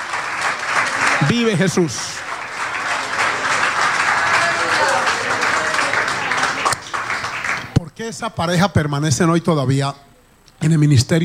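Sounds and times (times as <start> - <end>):
audience applause: 0.0 - 7.8
speech: 1.2 - 2.2, 8.0 - 11.2.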